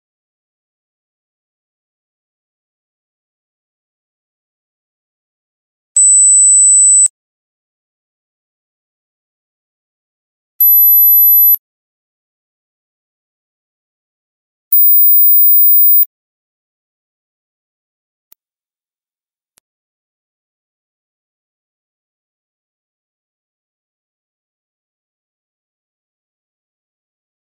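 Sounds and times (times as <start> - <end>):
hearing test mosquito ringtone teen buzz: 10.6 - 11.6, 14.8 - 16.0.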